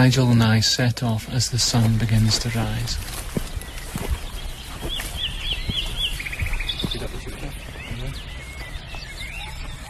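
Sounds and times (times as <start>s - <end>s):
speech: 0.0s - 3.5s
birds singing at dawn: 0.0s - 9.8s.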